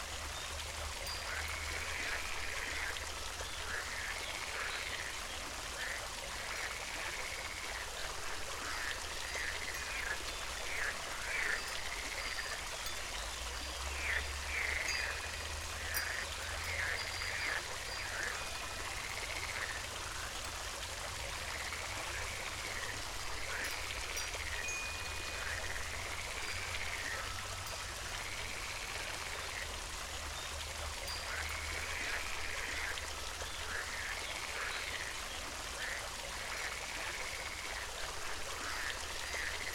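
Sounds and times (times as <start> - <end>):
wind chimes: 0.0 - 2.8, 9.6 - 20.6, 21.4 - 32.8, 39.3 - 39.7
fountain: 0.0 - 39.7
frogs croaking: 0.1 - 39.7.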